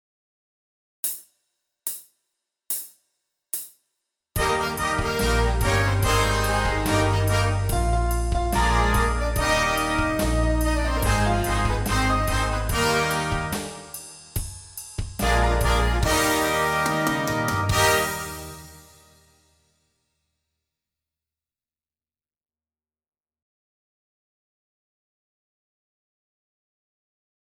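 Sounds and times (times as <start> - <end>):
rhythmic music: 4.4 - 18.9.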